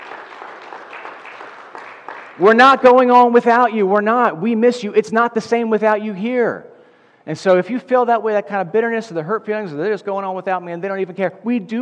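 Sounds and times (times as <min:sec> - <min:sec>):
audience applauding: 0:00.0 - 0:02.6
speech: 0:02.4 - 0:11.8.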